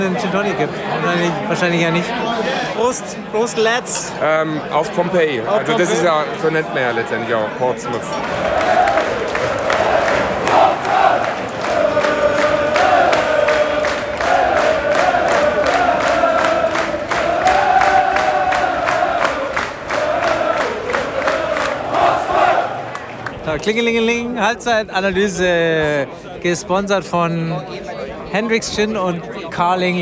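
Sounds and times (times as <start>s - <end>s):
speech: 0.0s - 8.4s, 23.6s - 30.0s
football stadium crowd chanting: 4.8s - 23.5s
steady rhythmic claps: 8.1s - 23.6s.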